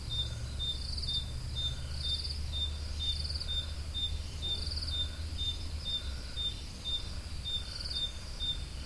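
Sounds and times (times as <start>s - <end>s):
cricket song at Roodekopjes: 0.0s - 8.8s.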